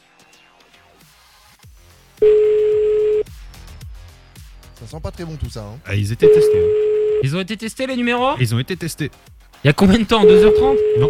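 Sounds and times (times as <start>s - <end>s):
telephone tone while dialing a number: 2.2s - 3.2s, 6.2s - 7.2s, 10.2s - 11.0s
speech: 4.9s - 11.0s.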